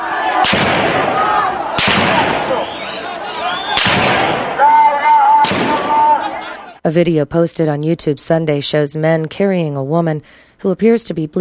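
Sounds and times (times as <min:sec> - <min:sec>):
constant roar of crowd noise on a street: 0:00.0 - 0:06.8
raised voices and shouts: 0:00.0 - 0:06.8
sharp loud gunshots on a street: 0:00.3 - 0:02.8, 0:03.7 - 0:04.7, 0:05.4 - 0:06.3
speech: 0:06.9 - 0:11.4.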